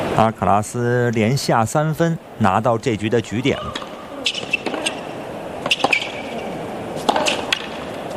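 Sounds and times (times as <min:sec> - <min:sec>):
commentator talking: 0:00.2 - 0:03.9
speech: 0:00.2 - 0:03.9
tennis ball struck by a racket during a professional match: 0:03.6 - 0:08.1.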